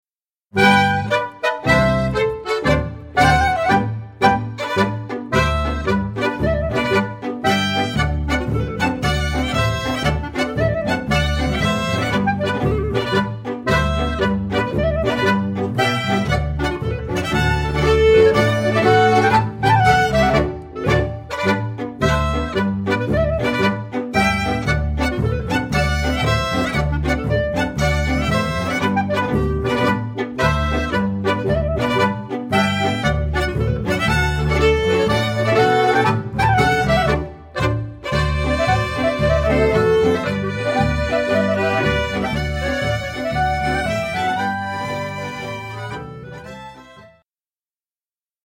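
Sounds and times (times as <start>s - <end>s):
march music: 0.6s - 47.2s.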